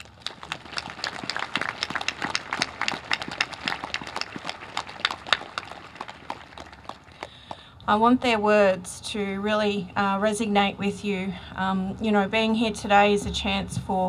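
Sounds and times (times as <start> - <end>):
round of applause: 0.0 - 7.6
speech: 7.9 - 14.0.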